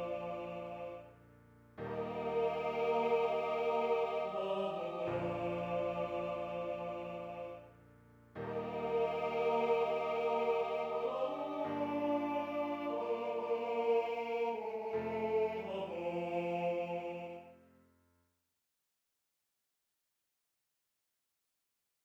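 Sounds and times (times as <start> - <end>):
tenor and bass voices singing a Christmas carol: 0.0 - 1.0, 1.9 - 7.6, 8.5 - 17.4.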